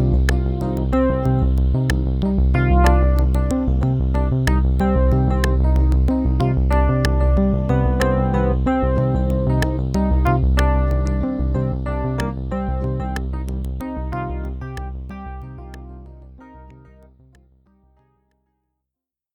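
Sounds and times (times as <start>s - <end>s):
Roland JD800 synthesizer and Roland RD1000 digital piano: 0.0s - 17.6s.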